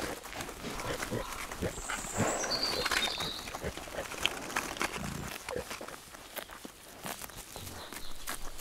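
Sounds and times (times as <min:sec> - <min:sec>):
pigs grunting and snuffling: 0:00.0 - 0:06.0
rustling and crunching steps: 0:00.0 - 0:08.5.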